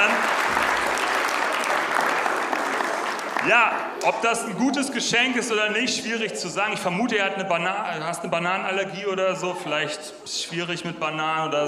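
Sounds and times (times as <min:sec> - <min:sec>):
crowd applauding: 0:00.0 - 0:04.4
speech: 0:03.4 - 0:11.6.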